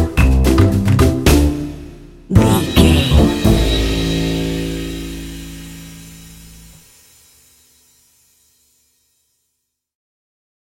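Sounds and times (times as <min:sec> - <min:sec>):
playful jazzy dramedy music: 0:00.0 - 0:01.7, 0:02.3 - 0:04.3.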